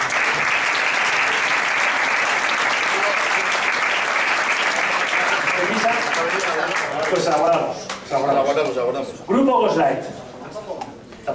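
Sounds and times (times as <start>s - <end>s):
audience applause: 0.0s - 7.7s
speech: 6.2s - 10.2s.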